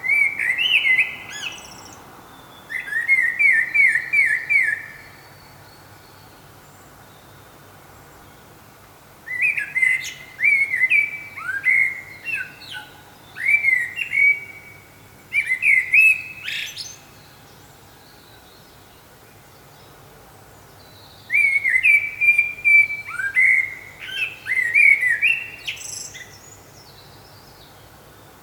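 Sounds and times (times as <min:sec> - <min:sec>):
common blackbird singing: 0:00.0 - 0:05.4, 0:09.3 - 0:17.4, 0:20.8 - 0:28.3.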